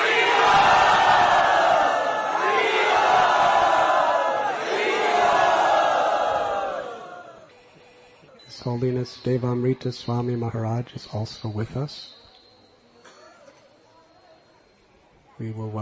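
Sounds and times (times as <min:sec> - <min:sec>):
large crowd cheering to welcome a swami at a yatra gathering: 0:00.0 - 0:07.5
speech: 0:08.8 - 0:12.2, 0:15.4 - 0:15.8.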